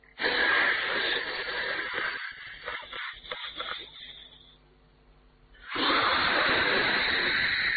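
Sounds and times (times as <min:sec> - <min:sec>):
voice imitating hiss of exhaled cigarette smoke: 0:00.0 - 0:04.6, 0:05.6 - 0:07.7.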